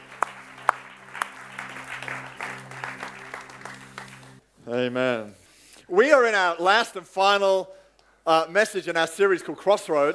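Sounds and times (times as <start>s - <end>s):
audience applauding the band: 0.0s - 4.4s
speech: 4.7s - 10.1s.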